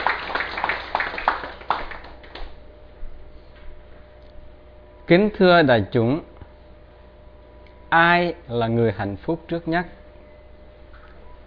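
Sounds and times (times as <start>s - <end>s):
audience applause: 0.0s - 2.5s
speech: 5.1s - 6.3s, 7.9s - 10.0s.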